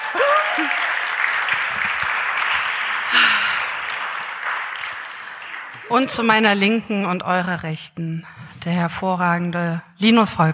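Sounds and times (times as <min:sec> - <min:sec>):
live audience applause: 0:00.0 - 0:06.5
speech: 0:05.9 - 0:10.5.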